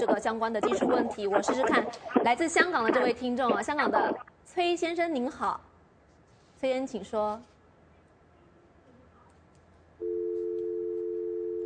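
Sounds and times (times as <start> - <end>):
speech: 0.0 - 5.7, 6.6 - 7.5
telephone busy tone after call dropped: 10.0 - 11.6.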